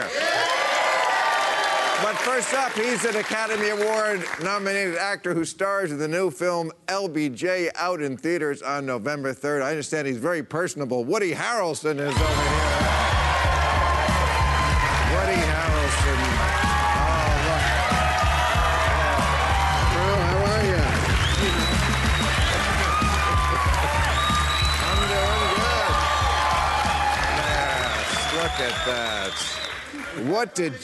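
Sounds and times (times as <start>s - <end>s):
cheering and whooping voices: 0.0s - 2.4s, 12.1s - 30.2s
studio audience applause: 0.0s - 4.7s, 12.1s - 30.7s
speech: 2.0s - 12.7s, 30.2s - 30.8s.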